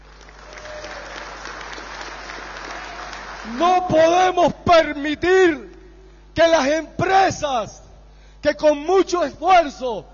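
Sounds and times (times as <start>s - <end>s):
crowd applause: 0.0s - 3.6s
speech: 3.4s - 5.7s, 6.4s - 7.8s, 8.4s - 10.1s.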